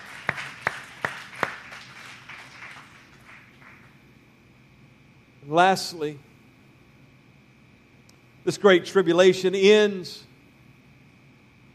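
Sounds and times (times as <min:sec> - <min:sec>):
audience hand clapping: 0:00.0 - 0:04.0
speech: 0:05.5 - 0:06.3, 0:08.5 - 0:10.3.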